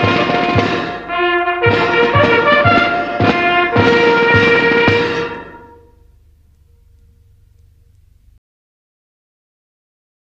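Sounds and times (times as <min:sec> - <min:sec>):
band playing: 0:00.0 - 0:07.9.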